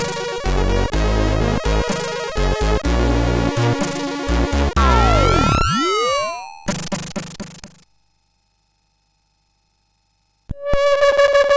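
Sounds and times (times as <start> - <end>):
MOS6581R3 SID chip music: 0.0 - 7.6.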